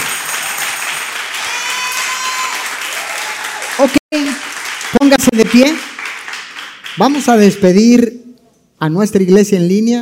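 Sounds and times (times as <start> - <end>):
audience applauding: 0.0 - 7.4
speech: 3.8 - 4.3, 5.2 - 5.9, 7.0 - 8.2, 8.8 - 10.0.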